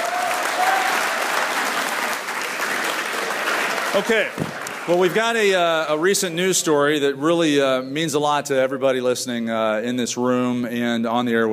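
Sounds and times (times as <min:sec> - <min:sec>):
cheers and whistles: 0:00.0 - 0:02.1
audience applause: 0:00.0 - 0:06.1
speech: 0:03.9 - 0:11.5.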